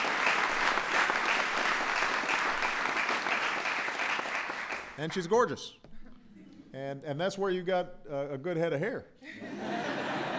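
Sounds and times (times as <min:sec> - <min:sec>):
audience applause: 0:00.0 - 0:05.0
speech: 0:05.0 - 0:05.8, 0:06.8 - 0:09.8
laughter: 0:09.2 - 0:10.3.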